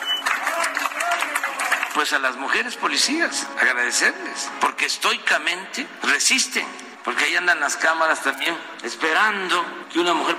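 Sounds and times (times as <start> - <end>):
crowd applauding at a street march: 0.0 - 2.4
speech: 2.0 - 10.3.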